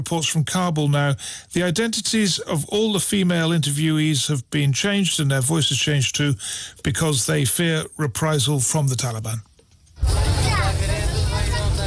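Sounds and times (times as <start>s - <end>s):
speech: 0.0s - 9.5s
car driving through the streets of Kabul: 10.0s - 11.8s.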